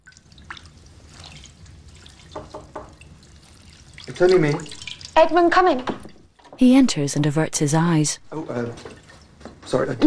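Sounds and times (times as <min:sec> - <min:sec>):
hair being washed in a china bowl: 0:00.0 - 0:05.8, 0:08.5 - 0:09.8
speech: 0:04.1 - 0:06.0, 0:06.6 - 0:08.9, 0:09.7 - 0:10.0.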